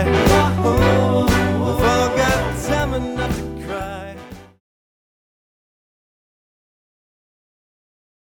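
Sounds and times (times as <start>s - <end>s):
big band: 0.0s - 4.6s.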